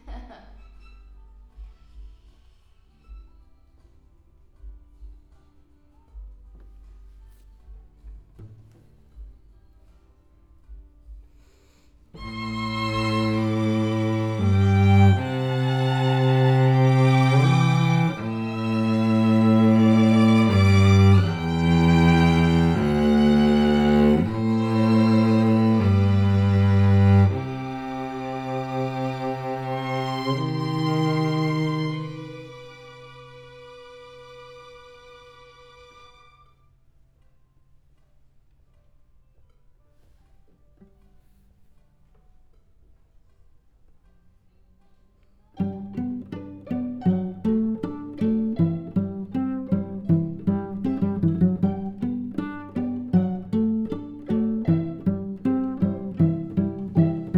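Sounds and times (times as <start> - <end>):
cello: 12.1 - 36.7, 45.5 - 57.3.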